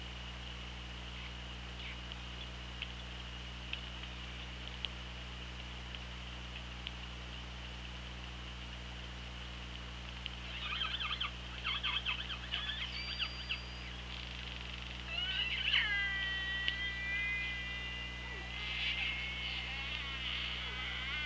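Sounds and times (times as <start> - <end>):
low hydrophone hum and hiss: 0.0 - 21.2
orca pulsed calls: 10.4 - 21.2.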